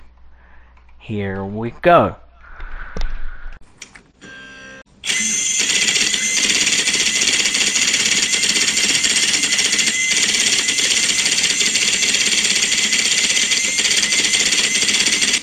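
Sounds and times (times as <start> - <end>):
speech: 1.0 - 2.2
daisy wheel printer printing: 5.0 - 15.4.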